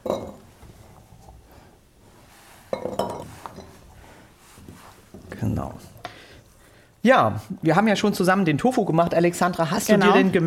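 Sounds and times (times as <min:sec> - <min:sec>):
glass jars clinking and knocking together: 0:00.0 - 0:00.5, 0:02.7 - 0:03.8
speech: 0:05.4 - 0:06.0, 0:07.0 - 0:10.4.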